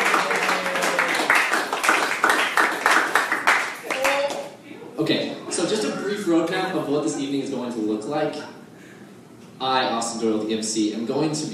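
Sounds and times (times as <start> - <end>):
audience applause: 0.0 - 4.5
speech: 5.1 - 8.6, 9.6 - 11.5.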